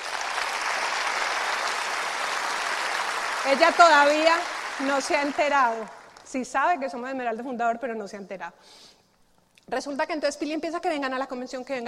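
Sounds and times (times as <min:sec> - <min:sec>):
audience applause: 0:00.0 - 0:06.3
speech: 0:03.4 - 0:08.9, 0:09.7 - 0:11.8.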